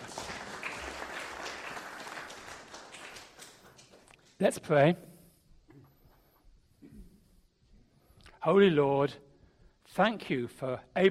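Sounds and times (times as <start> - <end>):
audience applause: 0.0 - 4.3
speech: 4.4 - 5.1, 8.4 - 9.3, 10.0 - 11.0.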